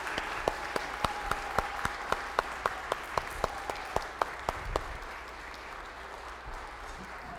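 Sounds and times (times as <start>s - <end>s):
audience applause: 0.0s - 7.3s.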